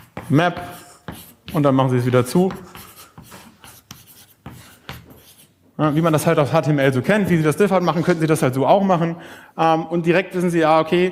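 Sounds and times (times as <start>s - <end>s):
writing on a board: 0.0s - 7.4s
speech: 0.3s - 0.8s, 1.5s - 2.8s, 5.8s - 11.1s.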